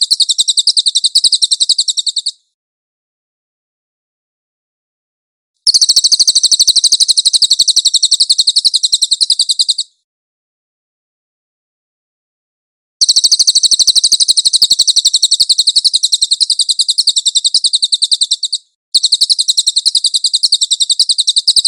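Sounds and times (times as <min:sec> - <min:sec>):
cililin trilling: 0:00.0 - 0:02.4, 0:05.7 - 0:09.9, 0:13.0 - 0:21.6.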